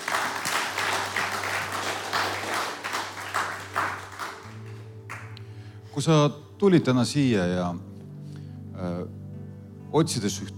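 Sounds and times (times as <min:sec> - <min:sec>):
crowd applauding: 0:00.0 - 0:05.4
speech: 0:06.0 - 0:07.9, 0:10.0 - 0:10.5.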